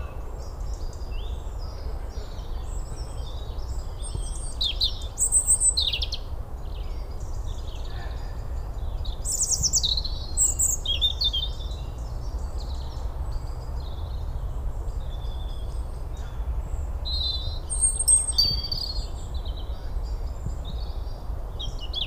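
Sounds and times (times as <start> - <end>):
European robin Erithacus rubecula singing: 0.0 - 22.0.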